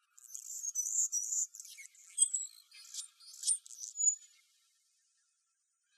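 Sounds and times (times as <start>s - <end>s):
Anna's hummingbird buzzy song in Arizona: 0.2s - 4.2s.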